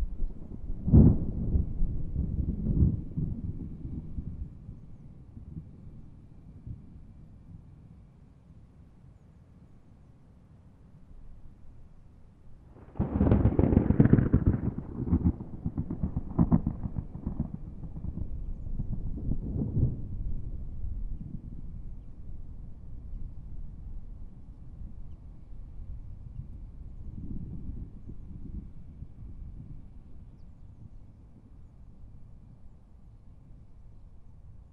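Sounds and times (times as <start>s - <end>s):
violent thunderstorm: 0.0s - 7.0s, 12.7s - 25.0s, 25.7s - 31.5s.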